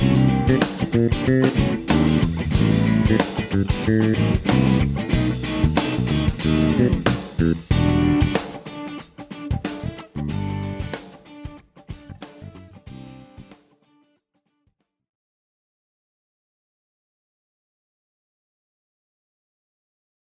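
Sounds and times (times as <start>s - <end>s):
funk fusion music: 0.0s - 14.0s.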